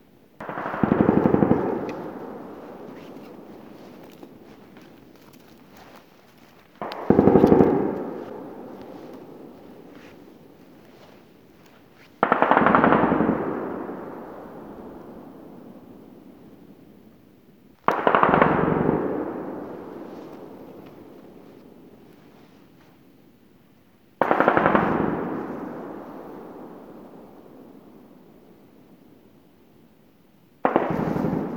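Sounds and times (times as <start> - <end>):
gunfire: 0.4 - 5.2, 6.7 - 10.8, 12.1 - 14.6, 17.9 - 21.4, 24.2 - 26.3, 30.6 - 31.5.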